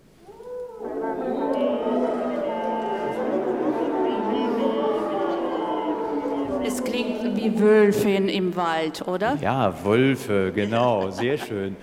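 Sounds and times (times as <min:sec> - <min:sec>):
brass players singing into their instruments: 0:00.6 - 0:08.0
laughter: 0:00.6 - 0:08.1, 0:09.3 - 0:11.8
speech: 0:07.4 - 0:11.8.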